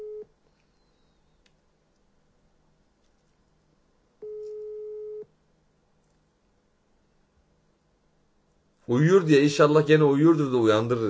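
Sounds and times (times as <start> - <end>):
ringback tone while a phone number is called: 0.0 - 0.2
low hiss: 0.0 - 11.0
speech: 8.9 - 11.0.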